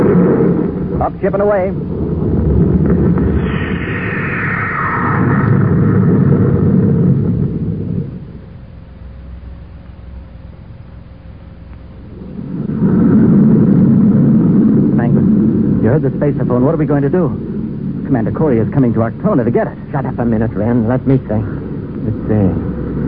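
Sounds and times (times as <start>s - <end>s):
spaceship rocket jets firing for blast-off: 0.0s - 10.2s, 11.4s - 23.0s
speech: 1.0s - 2.1s, 2.9s - 3.2s, 16.0s - 17.5s, 18.1s - 22.8s.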